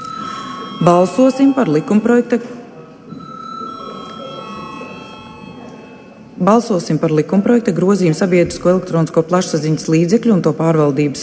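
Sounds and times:
parliament chamber bell ringing before vote: 0:00.0 - 0:07.5
speech: 0:00.8 - 0:02.6, 0:06.4 - 0:11.2.

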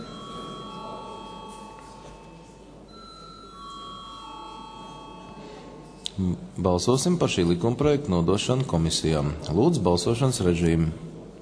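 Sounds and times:
parliamentary voting bell ringing as a steady electronic tone: 0:00.0 - 0:06.0
low constant murmur: 0:00.0 - 0:11.4
speech: 0:06.2 - 0:11.1.

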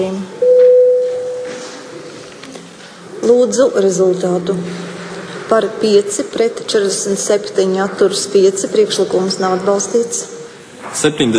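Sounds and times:
speech: 0:00.0 - 0:00.4, 0:03.3 - 0:04.9, 0:05.5 - 0:11.3
parliament voting bell ringing: 0:00.4 - 0:01.8.

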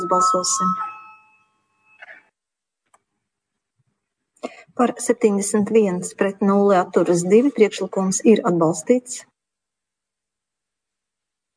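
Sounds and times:
parliament chairman's bell ringing before a vote: 0:00.0 - 0:02.2
speech: 0:00.1 - 0:00.9, 0:04.8 - 0:09.3.

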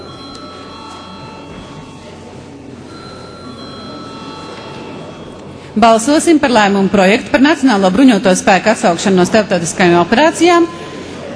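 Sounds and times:
parliament chamber bell: 0:00.0 - 0:02.2, 0:02.9 - 0:05.5
speech: 0:05.8 - 0:10.8.

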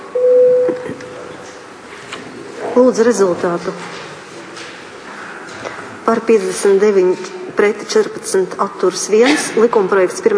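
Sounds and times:
voting bell in the Latvian parliament Saeima: 0:00.2 - 0:01.2
speech: 0:02.8 - 0:04.0, 0:06.1 - 0:10.3.

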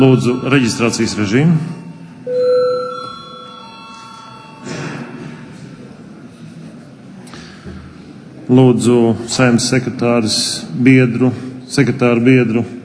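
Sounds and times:
speech: 0:00.0 - 0:02.4, 0:08.5 - 0:12.8
parliament chamber bell ringing: 0:00.0 - 0:06.0.

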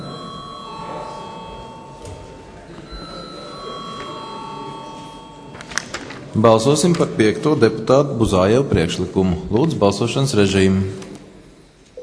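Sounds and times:
parliament chamber bell ringing: 0:00.0 - 0:05.9
murmur of voices: 0:00.0 - 0:11.8
speech: 0:06.4 - 0:11.0.

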